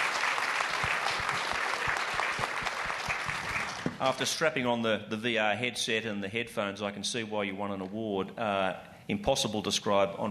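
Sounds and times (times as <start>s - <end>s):
audience applause: 0.0s - 4.3s
speech: 4.0s - 10.2s.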